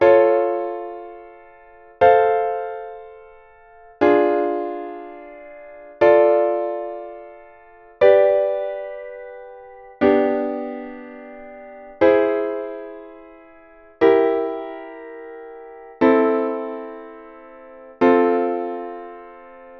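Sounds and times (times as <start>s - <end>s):
triad chord: 0.0s - 19.7s.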